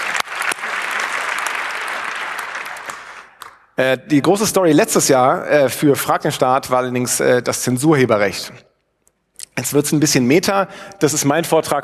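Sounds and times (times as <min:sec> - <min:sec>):
crowd applauding: 0:00.0 - 0:03.7
speech: 0:03.8 - 0:08.7, 0:09.6 - 0:11.8.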